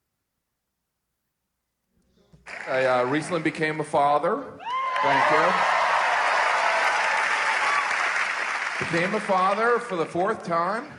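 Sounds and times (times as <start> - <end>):
audience applause: 2.4 - 3.6, 4.6 - 10.9
speech: 2.7 - 5.8, 8.8 - 10.9.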